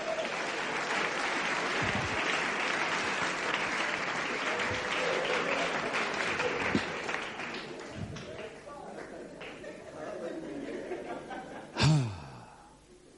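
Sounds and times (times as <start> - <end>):
audience clapping: 0.0 - 9.8
laughter: 8.7 - 12.0.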